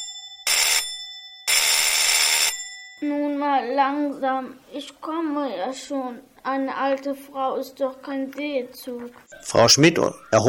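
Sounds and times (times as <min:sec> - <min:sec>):
doorbell ringing at apartment door: 0:00.0 - 0:03.0
speech: 0:03.0 - 0:10.4.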